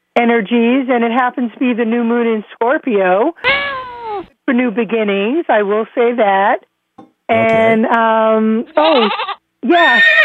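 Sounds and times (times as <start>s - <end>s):
speech: 0.2s - 3.6s, 4.2s - 6.7s, 7.3s - 10.2s
horse whinny likened to the talking horse Mr. Ed: 3.4s - 4.3s, 9.9s - 10.2s.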